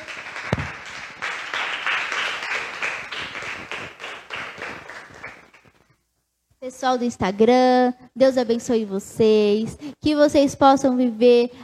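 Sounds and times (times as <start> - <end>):
audience applauding: 0.0 - 5.8
speech: 6.7 - 11.6.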